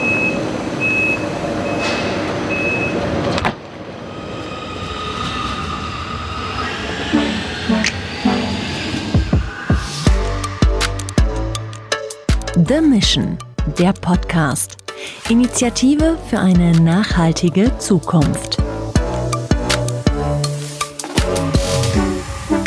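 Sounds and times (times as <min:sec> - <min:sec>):
train door-closing warning beeps: 0:00.0 - 0:03.1
rumbling rail noise: 0:00.4 - 0:12.0, 0:18.6 - 0:22.6
train low hum: 0:03.6 - 0:12.0, 0:18.6 - 0:22.6
speech: 0:12.7 - 0:18.5.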